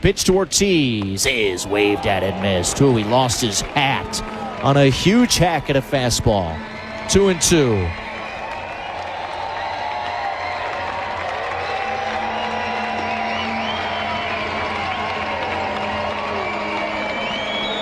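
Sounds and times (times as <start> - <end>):
speech: 0.0 - 8.0
home crowd cheering at baseball game: 0.0 - 17.8
scattered clapping: 0.0 - 17.8
laughter: 0.3 - 9.6
whoops: 1.2 - 17.8.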